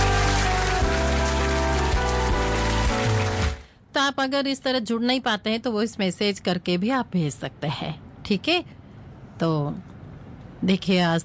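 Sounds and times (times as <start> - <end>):
loud sustained musical tone with shifting chords: 0.0 - 3.6
audience applause: 0.0 - 3.7
speech: 4.1 - 8.8, 9.4 - 9.9, 10.6 - 11.2.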